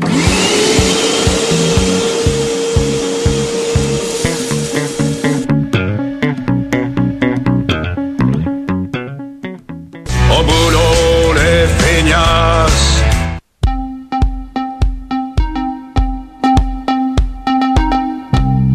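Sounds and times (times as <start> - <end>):
vacuum cleaner running: 0.0 - 8.7
rhythmic plucky music track: 0.0 - 18.7.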